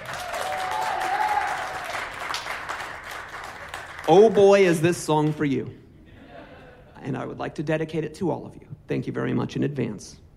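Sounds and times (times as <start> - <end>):
audience applause: 0.0 - 4.7
speech: 4.1 - 5.8, 7.1 - 10.2.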